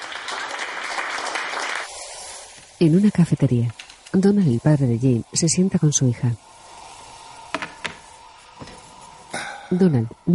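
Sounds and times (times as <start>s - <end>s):
group clapping at a support meeting: 0.0s - 1.9s
speech: 2.8s - 6.5s, 9.7s - 10.3s.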